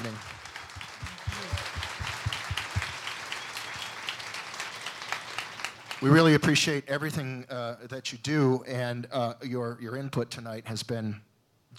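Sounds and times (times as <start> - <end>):
audience applause: 0.0 - 6.3
speech: 6.0 - 11.7.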